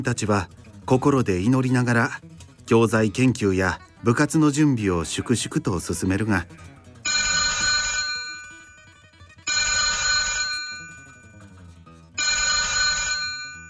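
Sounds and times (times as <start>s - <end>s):
speech: 0.0s - 7.2s
telephone at a school ringing: 7.0s - 11.6s, 12.2s - 13.6s.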